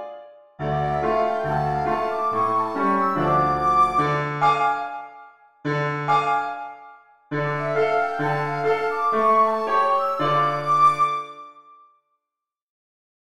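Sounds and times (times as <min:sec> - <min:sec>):
flute playing in the hall: 0:00.7 - 0:04.9, 0:07.4 - 0:11.8.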